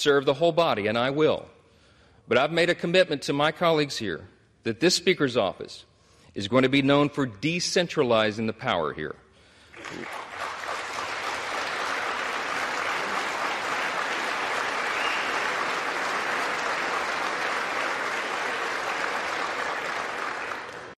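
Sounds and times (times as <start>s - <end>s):
speech: 0.0s - 1.6s, 2.3s - 9.2s, 9.8s - 10.4s
crowd applauding in the House chamber: 9.7s - 20.9s.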